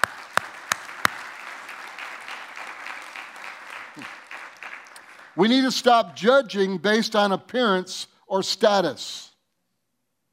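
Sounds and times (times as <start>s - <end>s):
audience applause: 0.0s - 5.4s
speech: 4.0s - 4.2s, 5.4s - 9.3s.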